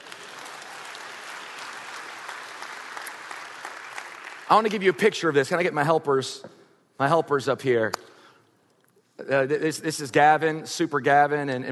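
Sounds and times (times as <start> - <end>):
audience clapping: 0.0 - 5.2
speech: 4.5 - 8.2, 9.2 - 11.6.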